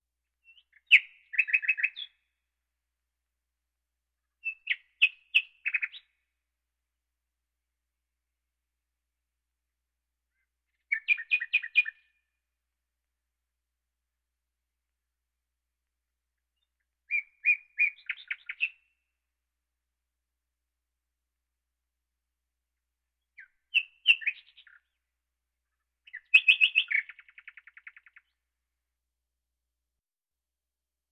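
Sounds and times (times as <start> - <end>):
common nightingale song: 0.0 - 3.3, 4.1 - 7.1, 10.2 - 13.1, 13.9 - 19.7, 21.8 - 29.0.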